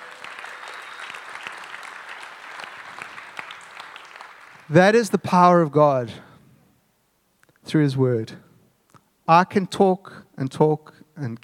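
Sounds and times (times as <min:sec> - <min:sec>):
audience clapping: 0:00.0 - 0:05.2
speech: 0:04.7 - 0:06.3, 0:07.7 - 0:08.4, 0:09.3 - 0:11.4.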